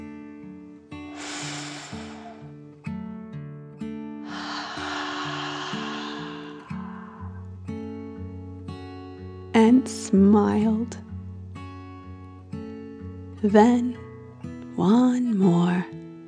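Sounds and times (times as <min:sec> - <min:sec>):
deep slow dragon breath in and out: 0:01.1 - 0:02.8, 0:04.2 - 0:08.0
speech: 0:09.7 - 0:11.0, 0:13.4 - 0:14.0, 0:14.8 - 0:16.0.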